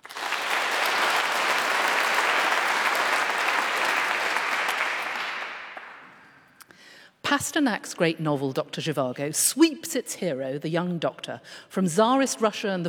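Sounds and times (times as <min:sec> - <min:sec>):
audience applause welcoming guests: 0:00.0 - 0:06.4
speech: 0:07.3 - 0:12.8.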